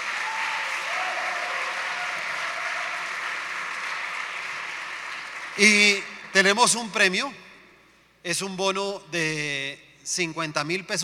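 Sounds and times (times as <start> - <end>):
applause: 0.0 - 6.4
speech: 5.6 - 7.5, 8.2 - 11.0.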